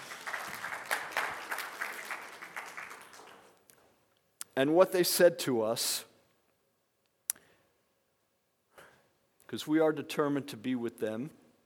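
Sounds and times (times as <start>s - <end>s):
crowd applauding: 0.0s - 3.6s
speech: 4.6s - 6.1s, 9.5s - 11.4s.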